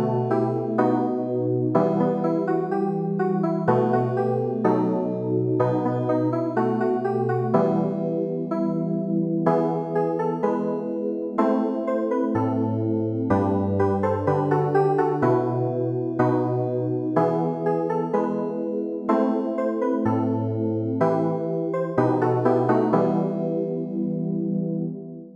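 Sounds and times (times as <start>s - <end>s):
clavier playing: 0.0s - 24.9s.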